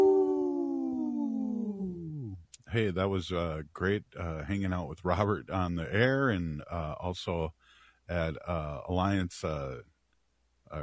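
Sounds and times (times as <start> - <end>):
person imitating a wolf howl: 0.0 - 2.4
speech: 2.7 - 9.9.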